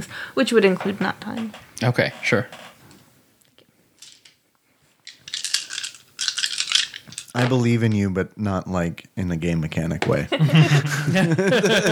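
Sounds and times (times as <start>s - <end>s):
speech: 0.0s - 2.7s, 7.4s - 11.9s
dice clattering across a surface during a tabletop roleplaying game of Little Fears: 4.0s - 4.4s, 5.0s - 7.4s
laughter: 10.1s - 11.9s.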